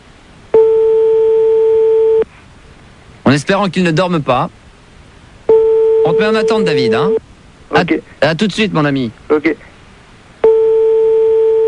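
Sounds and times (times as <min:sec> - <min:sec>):
faint hiss: 0:00.0 - 0:11.6
telephone ringing tone on a call: 0:00.6 - 0:02.2, 0:05.5 - 0:07.2, 0:10.4 - 0:11.6
speech: 0:03.3 - 0:04.6, 0:06.0 - 0:09.7.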